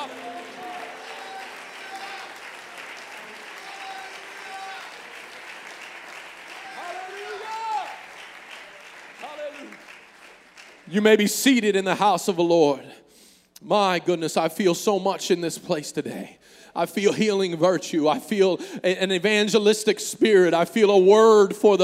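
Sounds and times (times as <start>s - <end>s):
audience clapping hands: 0.0s - 11.9s
speech: 10.9s - 13.0s, 13.6s - 21.8s.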